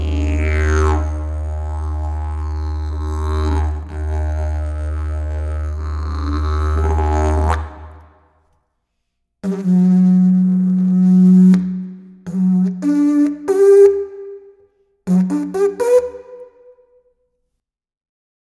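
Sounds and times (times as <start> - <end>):
didgeridoo: 0.0 - 8.0, 9.4 - 14.3, 15.1 - 16.6.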